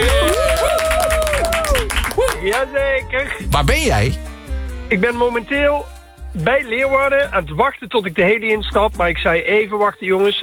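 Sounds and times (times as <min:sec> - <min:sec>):
applause for a guest on a radio programme: 0:00.0 - 0:02.7
speech: 0:02.5 - 0:04.3, 0:04.9 - 0:10.4.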